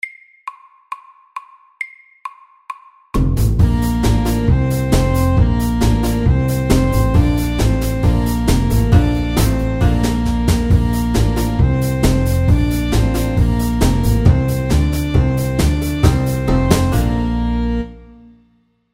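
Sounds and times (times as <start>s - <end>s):
fast square dance music at 135 bpm: 3.6s - 17.8s.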